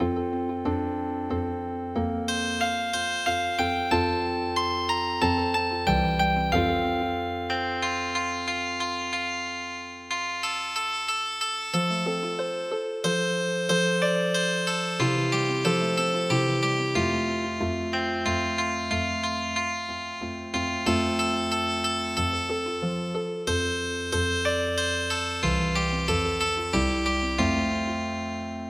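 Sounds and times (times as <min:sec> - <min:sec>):
traditional healing harp music: 0:00.0 - 0:28.6.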